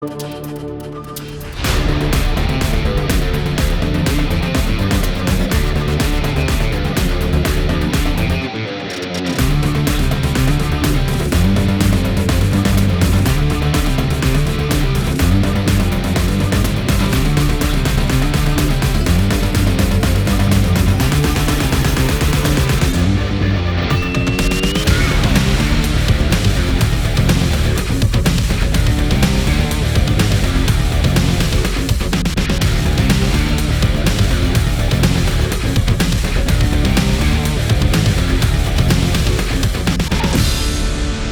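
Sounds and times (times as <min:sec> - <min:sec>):
archery fight background music: 0:00.1 - 0:41.2.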